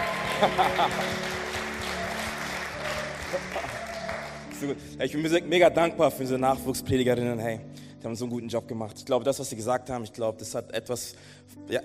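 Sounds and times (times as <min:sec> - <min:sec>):
laughter: 0:00.0 - 0:04.1
cheers and whistles: 0:00.0 - 0:04.6
crowd applauding: 0:00.0 - 0:04.8
speech: 0:00.4 - 0:01.4, 0:03.3 - 0:03.6, 0:04.6 - 0:11.8.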